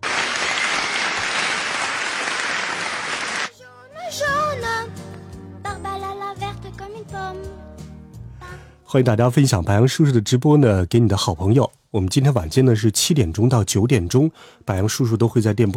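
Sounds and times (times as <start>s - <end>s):
applause: 0.0s - 3.5s
speech: 8.9s - 15.7s.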